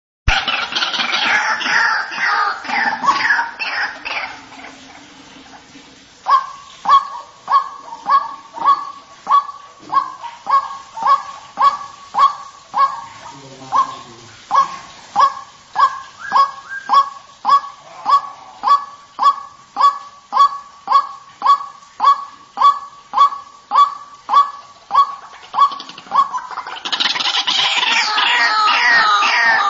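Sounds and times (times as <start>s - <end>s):
white-breasted waterhen clipped rising notes and harsh croaking calls used as a lure: 0.3s - 29.6s.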